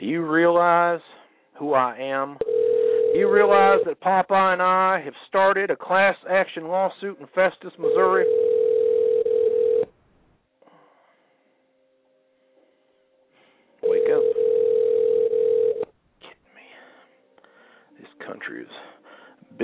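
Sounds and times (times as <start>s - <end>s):
speech: 0.1s - 8.6s, 18.3s - 18.9s
telephone ringing unanswered: 2.4s - 3.9s, 7.8s - 9.9s, 13.8s - 15.9s.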